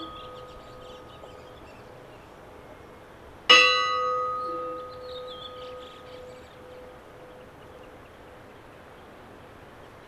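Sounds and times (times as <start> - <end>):
church bells tolling for a funeral at Kaupang church: 0.0 - 1.2, 3.5 - 7.3.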